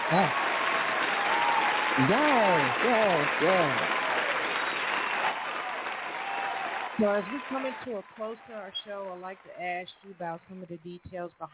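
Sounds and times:
voices rising: 0:00.0 - 0:05.6, 0:06.9 - 0:10.5
audience applause: 0:00.0 - 0:09.2
speech: 0:00.1 - 0:00.4, 0:02.0 - 0:04.0, 0:07.0 - 0:11.5.

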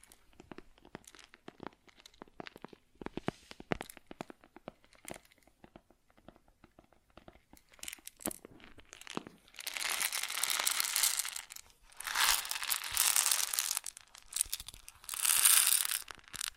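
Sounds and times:
grain dry ticks and crunches: 0:00.0 - 0:16.5
grain pouring hiss: 0:08.9 - 0:16.5.

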